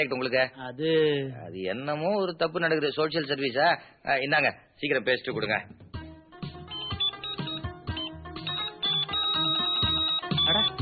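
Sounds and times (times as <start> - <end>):
speech: 0.0 - 5.8
phone ringtone for an incoming call: 6.6 - 10.7.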